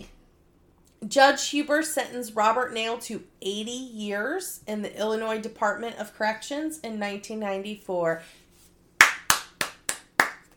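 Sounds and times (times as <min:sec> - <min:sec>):
speech: 0:01.1 - 0:08.4
hand clapping: 0:09.0 - 0:10.5.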